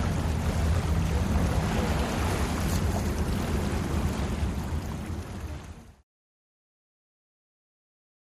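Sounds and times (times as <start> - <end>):
offshore power boat race ambience: 0.0 - 6.0.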